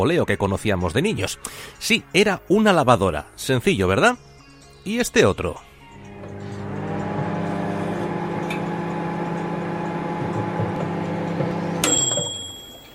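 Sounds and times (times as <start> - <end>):
speech: 0.0 - 5.7
microwave oven humming: 6.0 - 12.9.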